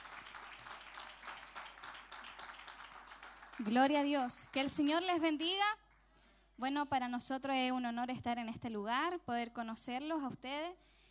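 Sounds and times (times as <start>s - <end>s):
church congregation applauding during a worship service: 0.0s - 4.9s
speech: 3.6s - 5.8s, 6.6s - 11.0s.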